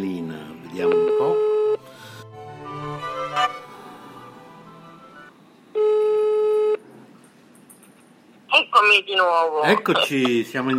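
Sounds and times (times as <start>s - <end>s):
speech: 0.8s - 1.0s, 9.0s - 10.7s
telephone call tone: 0.8s - 1.8s, 5.7s - 6.8s.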